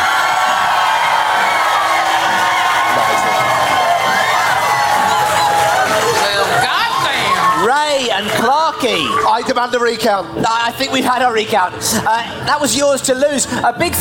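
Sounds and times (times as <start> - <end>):
whoops: 0.0 - 7.6
crowd cheering and clapping: 0.0 - 10.0
lively chatter: 0.0 - 13.9
speech: 8.4 - 13.9.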